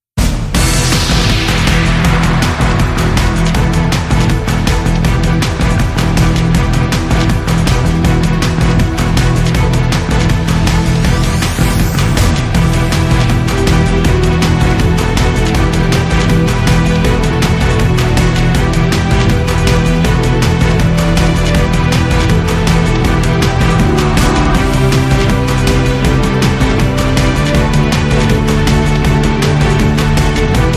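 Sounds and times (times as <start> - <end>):
boss battle game music: 0.2 - 30.7.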